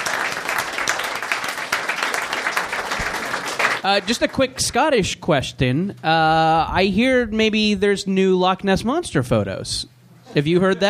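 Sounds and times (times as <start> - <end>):
audience applause: 0.0 - 4.4
speech: 3.8 - 10.8.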